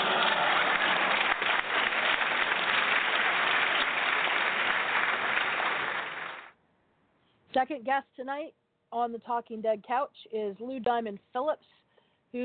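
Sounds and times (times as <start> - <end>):
applause: 0.0 - 6.6
speech: 7.6 - 12.4.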